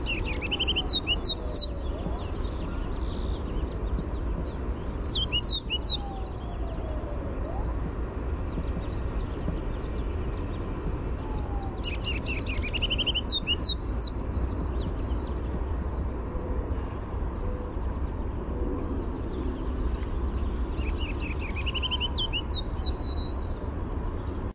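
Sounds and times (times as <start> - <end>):
ruby-crowned kinglet song: 0.0 - 16.1, 17.4 - 24.5.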